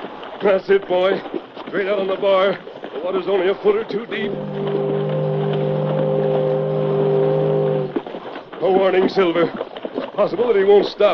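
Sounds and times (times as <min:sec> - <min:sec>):
speech: 0:00.4 - 0:04.8, 0:08.6 - 0:09.6, 0:10.2 - 0:11.1
approaching boat engine droning: 0:04.1 - 0:08.3.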